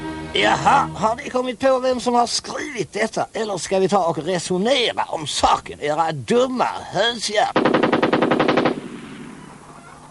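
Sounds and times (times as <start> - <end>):
speech: 0.3 - 7.9
rapid machine-gun-like gunshots: 7.6 - 9.7.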